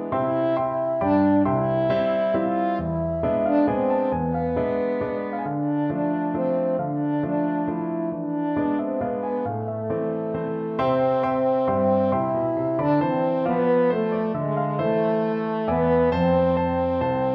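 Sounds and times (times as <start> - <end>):
french horn: 0.2 - 9.0, 10.2 - 17.3.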